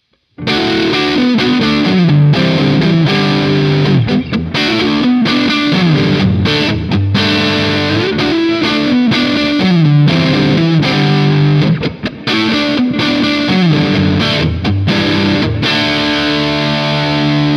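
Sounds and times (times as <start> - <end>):
electric guitar through Amplitube Max JCM100 amp simulation with EQ: 0.0 - 17.5.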